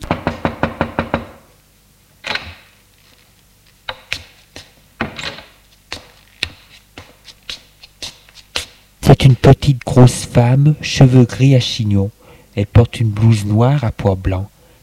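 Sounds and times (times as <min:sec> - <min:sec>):
housekeeper knocking on a bedroom door: 0:00.1 - 0:01.4
speech: 0:09.2 - 0:14.5.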